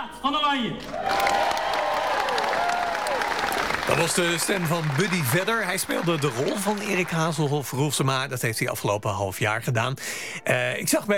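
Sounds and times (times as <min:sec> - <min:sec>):
speech: 0:00.2 - 0:01.4, 0:03.9 - 0:11.1
theatre audience applause at the final performance of a musical: 0:00.8 - 0:08.2
crowd noise: 0:00.8 - 0:08.9.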